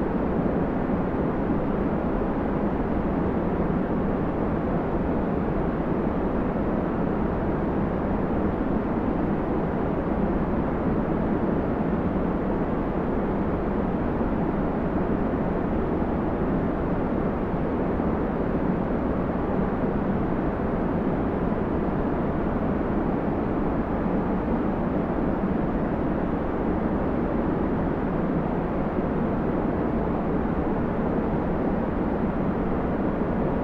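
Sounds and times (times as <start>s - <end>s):
deep rumbling white noise: 0.0s - 33.6s.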